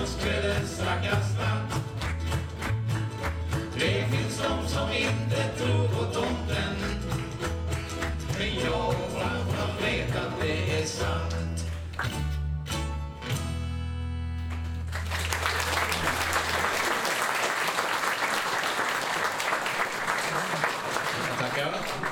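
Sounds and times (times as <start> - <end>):
audience clapping along to the beat: 0.0 - 12.4, 14.4 - 22.0
bass-heavy music: 0.0 - 15.2
sustained dense audience applause: 1.9 - 3.7, 14.5 - 22.0.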